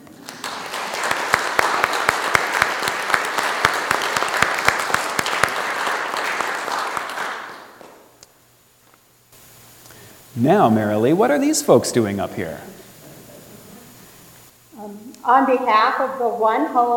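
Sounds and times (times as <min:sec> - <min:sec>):
audience applause: 0:00.0 - 0:08.0
speech: 0:10.4 - 0:12.7, 0:15.2 - 0:16.9.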